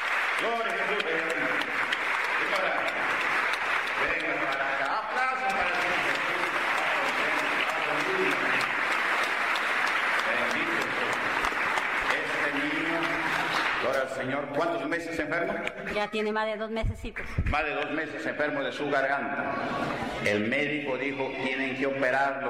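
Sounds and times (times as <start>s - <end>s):
sustained applause from a large gathering: 0.0s - 15.0s
speech: 0.4s - 1.3s, 14.1s - 22.4s.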